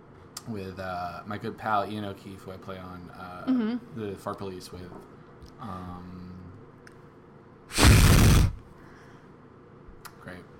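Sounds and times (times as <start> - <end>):
speech: 0.5 - 6.3
loud breathy fart noise blown with the mouth: 7.7 - 8.7.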